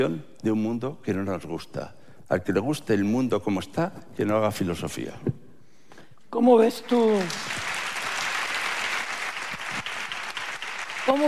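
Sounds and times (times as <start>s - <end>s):
speech: 0.0s - 5.4s, 6.3s - 7.6s, 11.1s - 11.2s
audience clapping: 6.6s - 11.2s.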